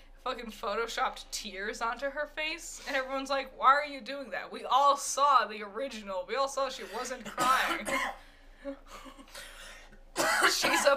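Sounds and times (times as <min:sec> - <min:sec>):
speech: 0:00.2 - 0:09.5, 0:10.3 - 0:10.9
quiet rough coughs: 0:07.2 - 0:08.3, 0:09.0 - 0:10.9.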